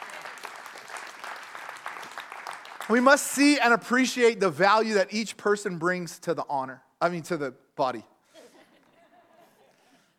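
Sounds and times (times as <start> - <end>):
audience clapping: 0.0 - 3.9
speech: 2.9 - 8.1.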